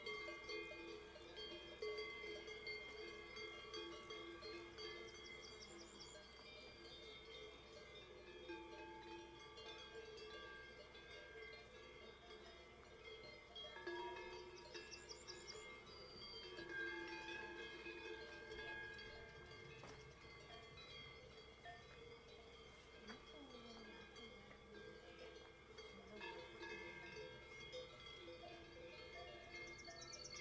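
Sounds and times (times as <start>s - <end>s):
cow bells clanking: 0.0s - 30.3s.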